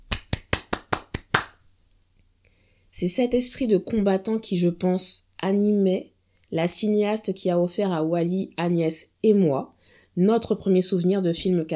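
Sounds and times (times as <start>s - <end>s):
hands clapping: 0.0s - 1.6s
speech: 3.0s - 11.7s.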